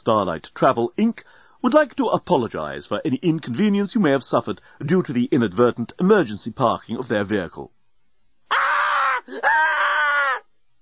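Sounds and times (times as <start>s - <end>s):
speech: 0.0s - 7.8s, 9.3s - 10.0s
woman screaming uncontrollably: 8.5s - 10.5s.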